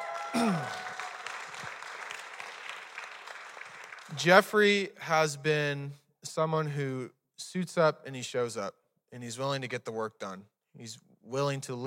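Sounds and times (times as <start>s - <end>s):
audience round of applause: 0.0s - 4.2s
speech: 0.3s - 0.8s, 4.2s - 11.8s.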